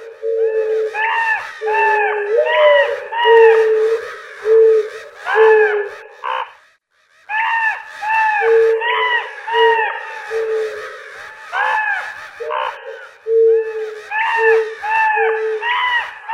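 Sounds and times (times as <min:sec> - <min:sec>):
crow cawing in a fight with an owl: 0:00.0 - 0:16.3.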